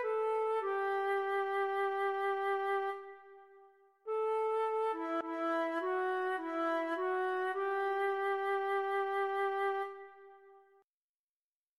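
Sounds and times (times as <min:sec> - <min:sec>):
recorder playing a Christmas song for a learning method: 0:00.0 - 0:03.2, 0:04.1 - 0:10.3.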